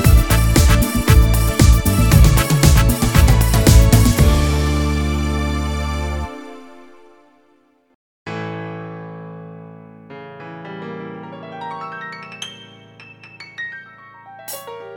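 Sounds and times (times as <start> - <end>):
disco music: 0.0 - 6.6.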